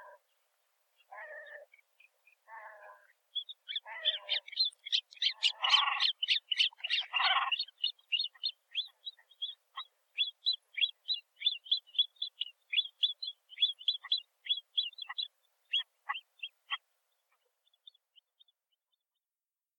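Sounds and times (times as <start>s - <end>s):
great crested grebe Podiceps cristatus calling: 1.1s - 1.7s, 2.5s - 17.4s.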